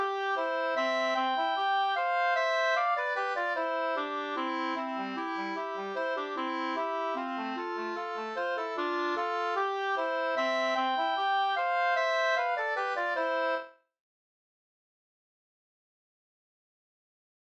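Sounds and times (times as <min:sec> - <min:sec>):
waltz in two parts: 0:00.0 - 0:13.8.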